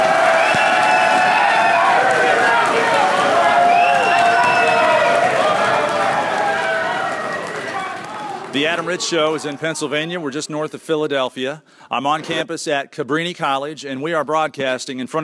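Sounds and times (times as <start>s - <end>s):
live audience applause and cheering: 0.0s - 10.1s
speech: 8.6s - 15.2s.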